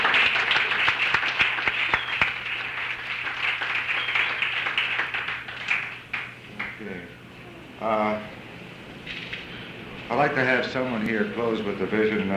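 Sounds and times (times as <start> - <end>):
audience applause for a performer at an evening event: 0.0 - 7.0
speech: 10.2 - 12.3.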